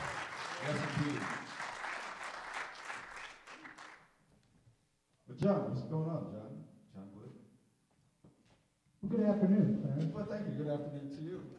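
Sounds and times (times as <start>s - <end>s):
audience applause: 0.0s - 4.1s
speech: 0.6s - 1.4s, 5.4s - 6.5s, 9.0s - 11.5s.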